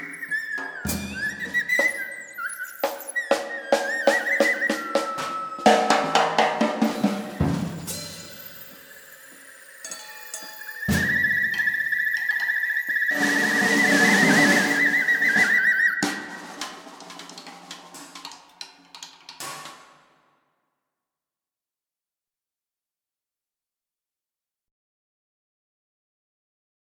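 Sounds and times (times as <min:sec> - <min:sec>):
candlestick whistle: 0:00.0 - 0:17.1.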